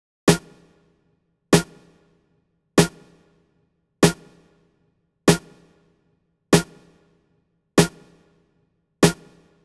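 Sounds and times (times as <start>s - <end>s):
snare drum track in A minor: 0.3s - 0.9s, 1.6s - 2.2s, 2.8s - 3.4s, 4.0s - 4.6s, 5.3s - 5.9s, 6.6s - 7.1s, 7.8s - 8.4s, 9.0s - 9.6s.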